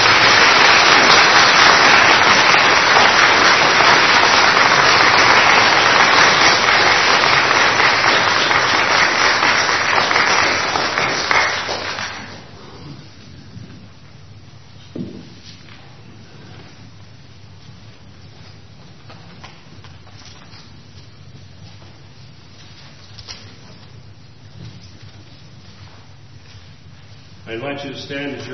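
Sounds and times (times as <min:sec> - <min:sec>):
crowd applause: 0:00.0 - 0:12.6.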